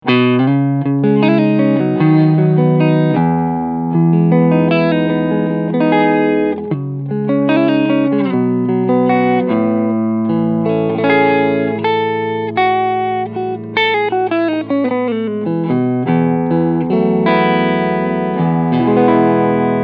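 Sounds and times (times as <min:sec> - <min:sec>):
medium gain distorted guitar: 0:00.0 - 0:19.8.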